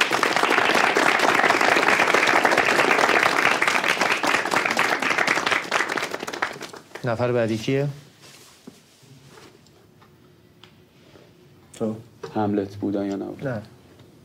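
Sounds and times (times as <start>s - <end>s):
audience in a theatre class clapping for a performance: 0.0s - 7.4s
speech: 7.0s - 8.0s, 11.8s - 13.8s.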